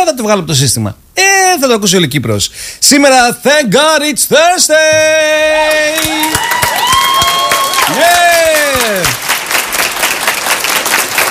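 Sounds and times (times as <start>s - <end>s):
speech: 0.1s - 7.3s, 7.9s - 10.0s
applause: 5.7s - 11.2s.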